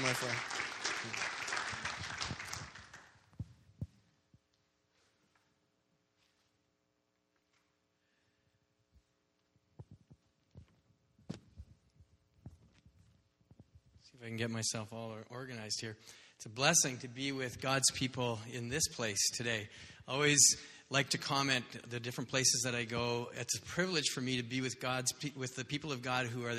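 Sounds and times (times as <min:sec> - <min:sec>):
audience applause welcoming speaker: 0:00.0 - 0:03.2
shuffling: 0:03.4 - 0:14.2
speech: 0:14.2 - 0:26.5.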